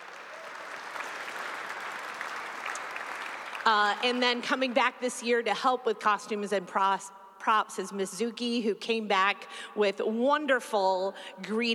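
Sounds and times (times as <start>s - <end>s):
audience applause: 0.0s - 3.7s
speech: 3.6s - 11.7s.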